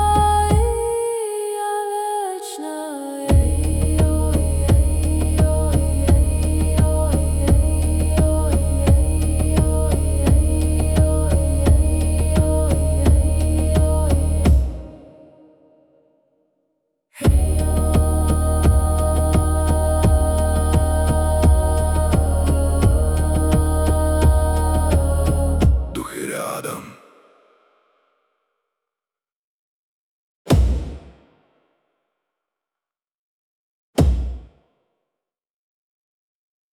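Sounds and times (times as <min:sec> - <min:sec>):
shamanic mantra chanted: 0:00.0 - 0:15.8, 0:17.2 - 0:27.2.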